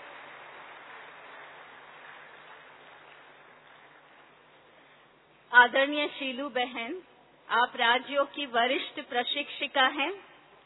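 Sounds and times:
crowd applause welcoming a speaker: 0:00.0 - 0:04.3
speech: 0:05.5 - 0:10.3.

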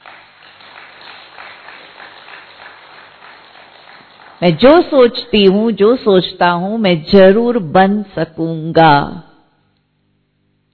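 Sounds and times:
audience clapping: 0:00.0 - 0:05.2
speech: 0:04.4 - 0:09.3.

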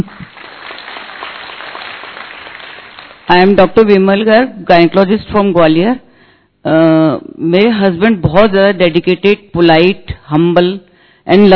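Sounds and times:
speech: 0:00.0 - 0:00.2, 0:03.3 - 0:06.0, 0:06.6 - 0:11.5
applause from a gathering of doctors from Gwalior: 0:00.0 - 0:03.3.

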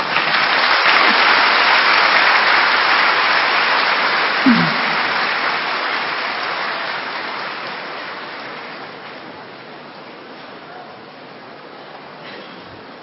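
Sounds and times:
audience clapping: 0:00.0 - 0:09.5.

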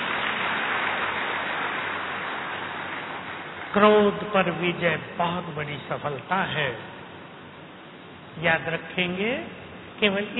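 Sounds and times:
audience clapping: 0:00.0 - 0:04.2
speech: 0:03.7 - 0:07.0, 0:08.4 - 0:10.3.

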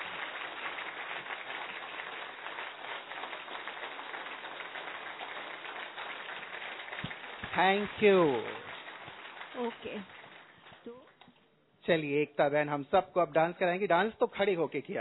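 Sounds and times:
crowd clapping together in a steady, fast rhythm: 0:00.0 - 0:11.2
speech: 0:07.6 - 0:08.6, 0:09.6 - 0:10.2, 0:11.9 - 0:15.0.

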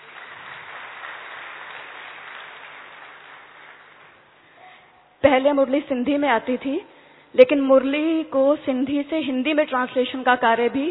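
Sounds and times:
audience clapping: 0:00.0 - 0:04.6
speech: 0:05.3 - 0:10.9.

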